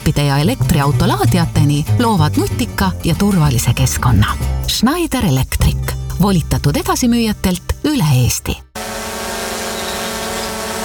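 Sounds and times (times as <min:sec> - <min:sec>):
speech: 0:00.1 - 0:08.6
drone propellers buzzing: 0:08.8 - 0:10.8.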